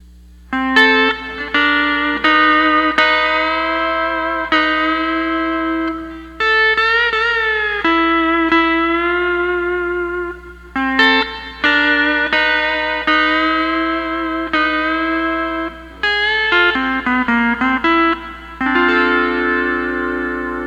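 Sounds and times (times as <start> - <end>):
12-string lap guitar playing: 0.0 - 20.6.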